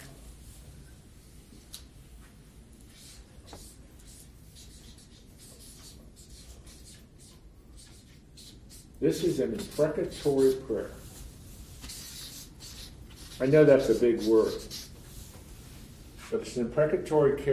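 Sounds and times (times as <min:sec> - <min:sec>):
writing on a board: 0:02.9 - 0:15.5
speech: 0:09.0 - 0:11.0, 0:13.4 - 0:14.8, 0:16.4 - 0:17.5.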